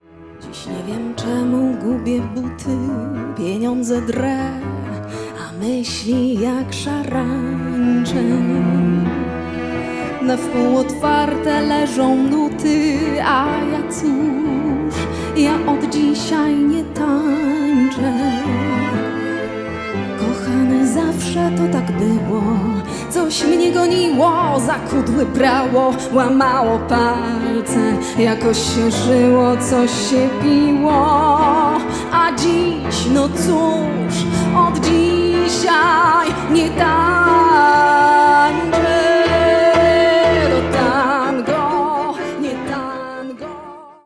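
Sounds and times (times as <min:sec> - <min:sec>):
tango music: 0:00.0 - 0:44.0.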